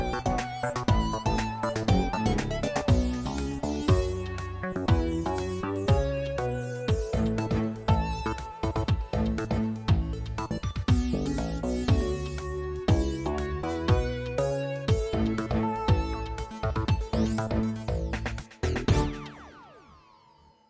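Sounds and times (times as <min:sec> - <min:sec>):
game music: 0:00.0 - 0:20.3.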